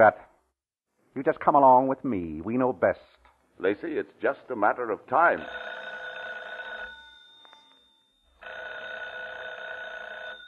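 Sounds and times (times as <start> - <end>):
speech: 0.0 - 0.3, 1.2 - 5.7
telephone ringing: 5.3 - 10.4.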